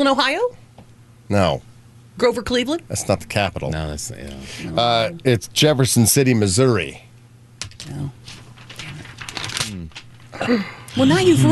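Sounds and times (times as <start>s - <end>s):
speech: 0.0s - 0.6s, 1.3s - 7.1s, 7.8s - 8.3s, 9.8s - 11.4s
sheet of paper snapped taut: 7.6s - 10.1s
paper crinkling: 8.2s - 10.3s.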